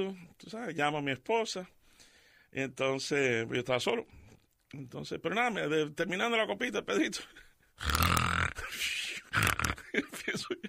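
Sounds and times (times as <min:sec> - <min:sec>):
speech: 0:00.0 - 0:01.8, 0:02.5 - 0:08.2, 0:08.8 - 0:10.6
man imitating snoring: 0:07.8 - 0:08.7, 0:09.3 - 0:09.8.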